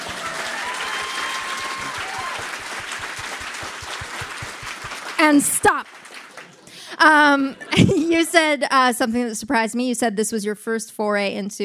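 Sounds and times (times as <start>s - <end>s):
audience clapping: 0.0s - 7.0s
speech: 5.2s - 6.0s, 7.0s - 11.6s.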